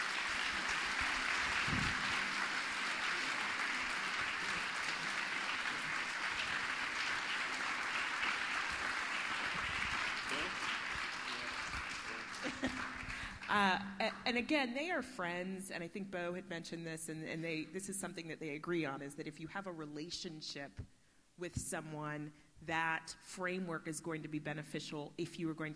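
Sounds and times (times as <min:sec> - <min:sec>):
audience applause: 0:00.0 - 0:13.5
individual claps: 0:00.0 - 0:13.5
speech: 0:13.5 - 0:25.7.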